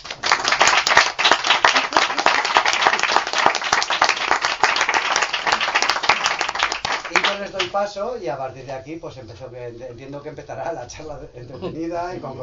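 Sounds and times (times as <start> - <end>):
audience applauding at a book presentation: 0.0 - 7.8
speech: 7.7 - 12.4.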